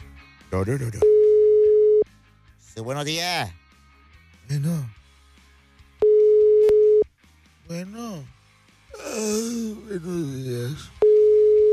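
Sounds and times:
speech: 0:00.5 - 0:01.3, 0:02.8 - 0:03.6, 0:04.5 - 0:05.0, 0:07.7 - 0:11.0
telephone dial tone while a call is dialled: 0:01.0 - 0:02.0, 0:06.0 - 0:07.0, 0:11.0 - 0:11.7.

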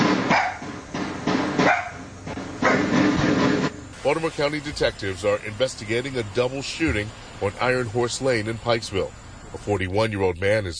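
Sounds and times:
dogs barking: 0:00.0 - 0:00.8, 0:01.5 - 0:03.2
speech: 0:04.1 - 0:10.7.

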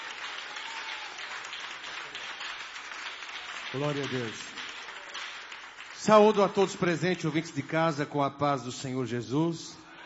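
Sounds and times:
applause: 0:00.0 - 0:07.7
speech: 0:03.7 - 0:04.5, 0:06.0 - 0:09.8.

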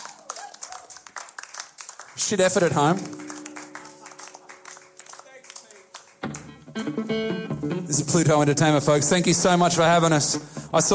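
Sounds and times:
audience applause: 0:00.0 - 0:06.7
speech: 0:02.2 - 0:03.2, 0:06.9 - 0:10.9.

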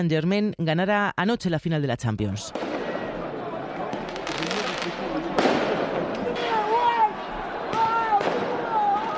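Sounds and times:
speech: 0:00.0 - 0:02.8
crowd roar: 0:02.5 - 0:09.1
firework bangs from riots in France after Paris Saint-Germain's Champions League win: 0:02.5 - 0:09.1
people shouting: 0:02.6 - 0:09.1.

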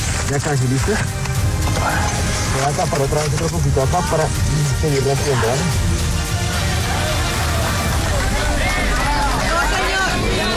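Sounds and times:
speech: 0:00.3 - 0:01.2, 0:01.8 - 0:05.9
community applauding a rescue from rubble: 0:06.2 - 0:10.5.

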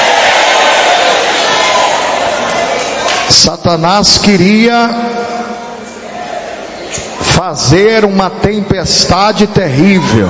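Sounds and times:
audience shouting: 0:00.0 - 0:03.3, 0:09.7 - 0:10.2
speech: 0:03.4 - 0:05.1, 0:07.4 - 0:10.2.

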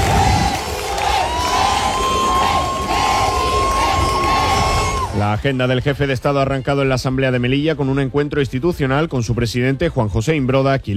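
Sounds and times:
large crowd cheering and shouting in a city square: 0:00.0 - 0:05.8
speech: 0:05.3 - 0:10.9.

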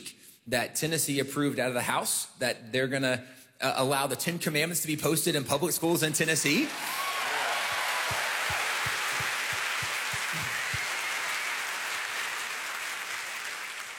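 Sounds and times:
speech: 0:00.5 - 0:07.1
room full of people applauding: 0:06.6 - 0:13.9.

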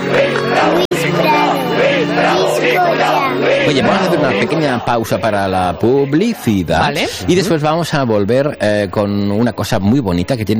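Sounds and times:
crowd chanting in unison: 0:00.0 - 0:07.6
speech: 0:03.7 - 0:10.5.

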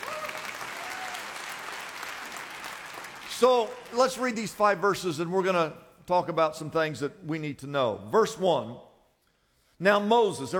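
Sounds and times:
faint voices and whoops: 0:00.0 - 0:01.4
audience clapping and applauding: 0:00.0 - 0:04.8
speech: 0:03.4 - 0:08.9, 0:09.8 - 0:10.5.

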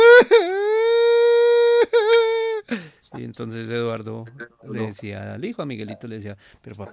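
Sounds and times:
young boy crying: 0:00.0 - 0:02.8
speech: 0:03.2 - 0:06.9.

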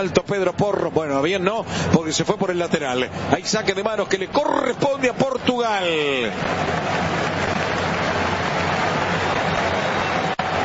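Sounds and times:
speech: 0:00.0 - 0:07.4
stadium crowd applauding: 0:03.4 - 0:10.6.

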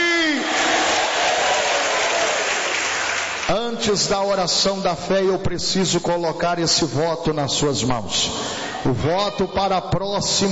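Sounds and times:
audience applauding: 0:00.4 - 0:03.5
speech: 0:03.6 - 0:10.5.

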